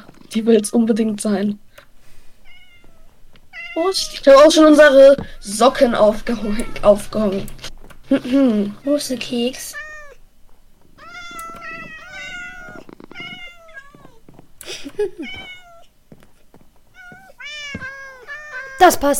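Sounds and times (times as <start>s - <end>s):
speech: 0.3s - 1.6s, 3.8s - 9.8s, 15.0s - 15.5s, 18.8s - 19.1s
cat meowing: 2.4s - 4.4s, 6.2s - 7.0s, 9.7s - 10.2s, 11.0s - 14.4s, 15.1s - 15.9s, 16.9s - 18.9s.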